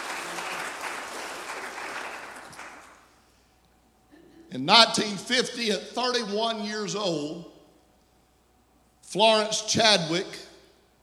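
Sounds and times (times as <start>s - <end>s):
audience clapping hands: 0.0s - 3.2s
speech: 4.5s - 7.5s, 9.1s - 10.5s.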